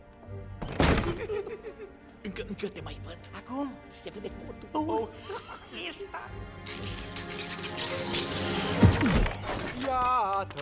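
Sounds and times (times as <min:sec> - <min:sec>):
door slammed hard: 0:00.6 - 0:01.4
laughter: 0:01.0 - 0:02.2, 0:04.8 - 0:06.3
speech: 0:02.4 - 0:10.6.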